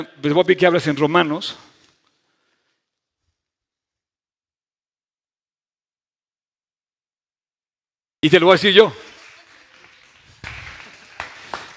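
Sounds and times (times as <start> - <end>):
speech: 0.0 - 1.7, 8.2 - 9.1
audience applause in a large room: 8.8 - 11.7.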